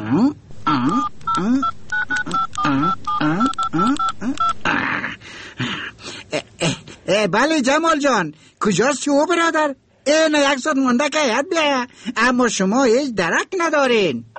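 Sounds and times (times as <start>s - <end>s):
speech: 0.1s - 1.6s, 7.2s - 14.3s
telephone keypad tones dialing a number: 0.7s - 4.6s.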